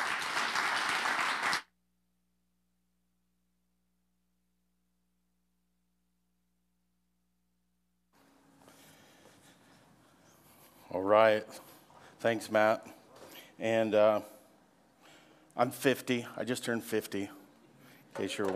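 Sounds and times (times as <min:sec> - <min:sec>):
audience applause welcoming a speaker: 0:00.0 - 0:01.7
speech: 0:11.0 - 0:13.0, 0:13.6 - 0:14.4, 0:15.6 - 0:17.4, 0:18.2 - 0:18.5.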